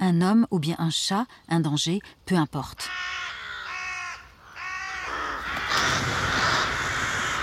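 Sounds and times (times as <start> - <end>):
speech: 0.1 - 3.2
colony of crows and jackdaws cawing: 2.8 - 7.4.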